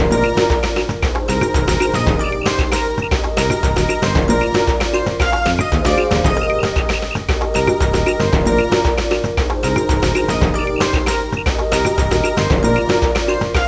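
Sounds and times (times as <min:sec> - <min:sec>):
contemporary ringtone: 0:00.1 - 0:13.5.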